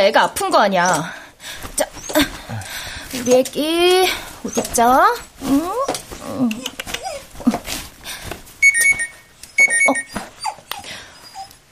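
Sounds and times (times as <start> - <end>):
speech: 0.0 - 6.7
small dog whimpering and yipping: 1.8 - 2.4, 4.4 - 7.6, 8.6 - 11.6
mobile phone ringing: 8.6 - 10.2.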